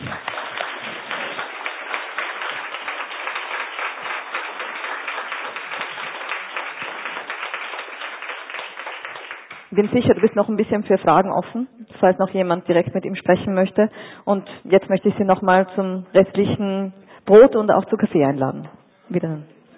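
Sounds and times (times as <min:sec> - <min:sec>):
crowd applauding: 0:00.0 - 0:10.4
speech: 0:09.8 - 0:19.5.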